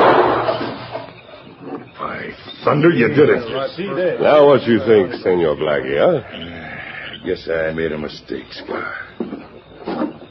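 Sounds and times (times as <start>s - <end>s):
gunshot: 0.0s - 0.9s
speech: 2.7s - 6.6s, 7.2s - 9.0s.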